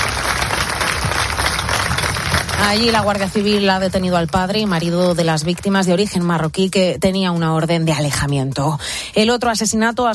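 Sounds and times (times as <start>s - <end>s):
crowd applauding at a protest gathering in Pedroñeras, Cuenca: 0.0s - 5.8s
speech: 2.6s - 10.1s.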